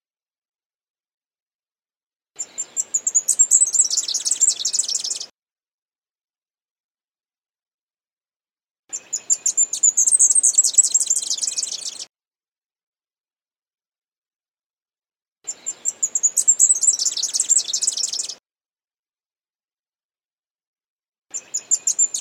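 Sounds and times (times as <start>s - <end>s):
leaf warbler song of quick chirps building into a fast trill: 2.4s - 5.3s, 8.9s - 12.1s, 15.5s - 18.4s, 21.3s - 22.1s.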